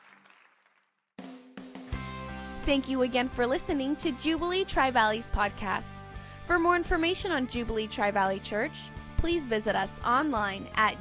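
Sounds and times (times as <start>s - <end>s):
crowd clapping: 0.0s - 1.0s
speech: 2.6s - 10.9s.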